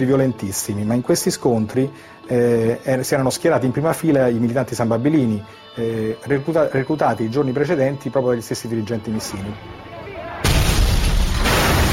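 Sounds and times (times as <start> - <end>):
speech: 0.0 - 9.9
hand grenade explosions during a street clash in Milan: 10.4 - 11.9.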